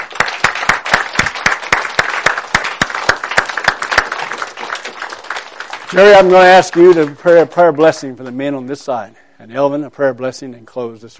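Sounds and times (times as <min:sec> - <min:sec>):
audience applauding: 0:00.0 - 0:07.5
speech: 0:05.9 - 0:11.1.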